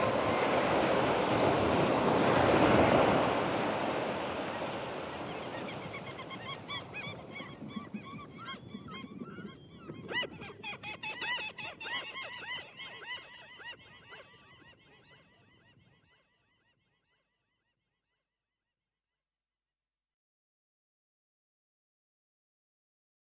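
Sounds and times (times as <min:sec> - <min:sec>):
sea waves: 0:00.0 - 0:07.8.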